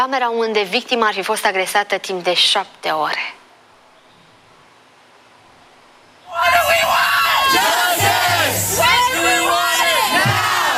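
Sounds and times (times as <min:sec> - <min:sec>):
speech: 0:00.0 - 0:03.4
large crowd of protesting students shouting: 0:06.2 - 0:10.7.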